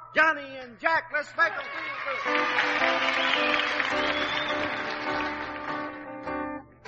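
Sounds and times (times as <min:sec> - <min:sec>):
speech: 0:00.2 - 0:05.3
studio audience applause: 0:01.4 - 0:06.4.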